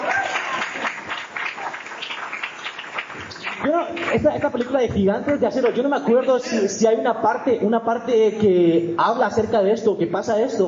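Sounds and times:
audience applause: 0:00.0 - 0:04.2
speech: 0:03.6 - 0:10.6.

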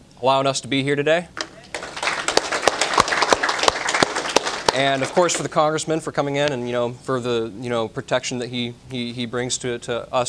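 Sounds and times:
speech: 0:00.2 - 0:01.4, 0:04.8 - 0:10.2
audience applause: 0:01.4 - 0:05.5.

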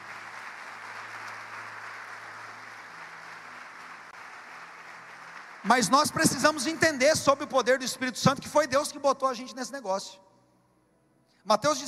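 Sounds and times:
audience applauding: 0:00.0 - 0:07.4
speech: 0:05.6 - 0:10.2, 0:11.4 - 0:11.8.

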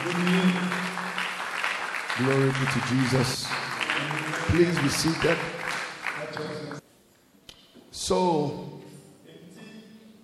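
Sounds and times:
audience clapping hands: 0:00.0 - 0:06.8
speech: 0:02.2 - 0:03.6, 0:04.5 - 0:05.6, 0:08.1 - 0:08.7.

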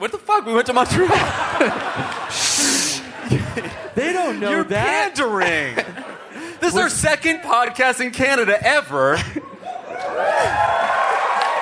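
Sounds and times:
speech: 0:00.0 - 0:02.4, 0:03.3 - 0:06.0, 0:06.6 - 0:09.5
laughter: 0:00.8 - 0:07.4, 0:09.0 - 0:11.6
live audience cheering and applause: 0:01.2 - 0:03.9, 0:09.6 - 0:11.6.

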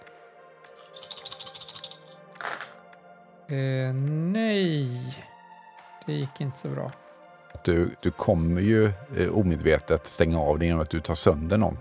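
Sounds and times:
eight dice being rolled: 0:00.7 - 0:02.8
speech: 0:03.5 - 0:05.3, 0:06.1 - 0:07.0, 0:07.6 - 0:11.7.

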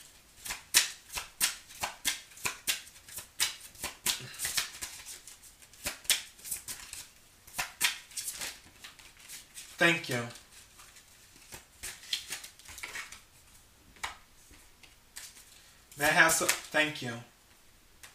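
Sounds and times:
tarot cards shuffled by hand: 0:00.4 - 0:13.2, 0:14.0 - 0:15.6
speech: 0:09.8 - 0:10.4, 0:16.0 - 0:17.3.

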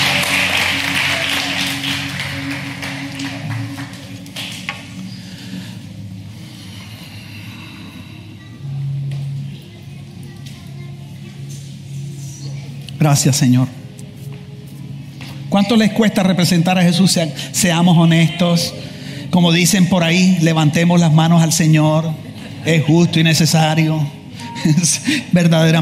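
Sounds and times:
audience applause: 0:00.0 - 0:05.0
speech: 0:13.0 - 0:13.8, 0:15.6 - 0:25.7.

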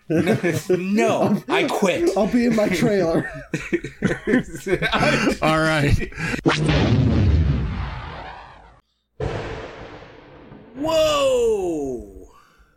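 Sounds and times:
laughter: 0:00.0 - 0:06.4
speech: 0:00.1 - 0:07.4, 0:10.8 - 0:12.1
loud thunder after nearby lightning strike: 0:06.7 - 0:11.1.

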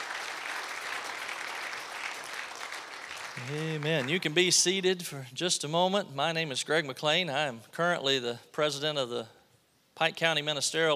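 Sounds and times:
audience applause: 0:00.0 - 0:04.5
speech: 0:03.4 - 0:09.4, 0:10.0 - 0:10.9.

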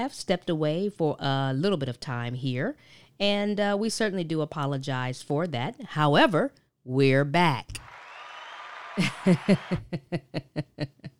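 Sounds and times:
speech: 0:00.0 - 0:08.0, 0:09.0 - 0:11.1
hand clap: 0:07.8 - 0:09.8
laughter: 0:08.7 - 0:11.1.

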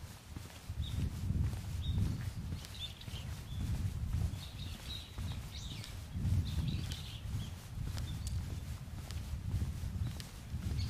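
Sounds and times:
low rumbling wind in an autumn mountain scene: 0:00.0 - 0:10.8
birds chirping: 0:01.8 - 0:08.7.

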